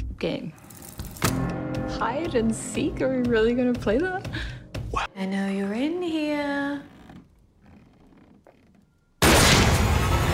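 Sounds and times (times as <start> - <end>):
speech: 0.2 - 0.6, 1.3 - 6.9
faint creaks and movement: 5.8 - 9.2
gunshot in a horror comedy film: 9.2 - 10.2.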